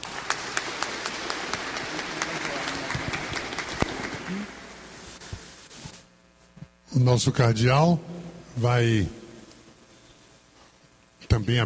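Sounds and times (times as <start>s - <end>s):
applause: 0.0s - 4.7s
speech: 7.0s - 9.2s, 11.4s - 11.6s.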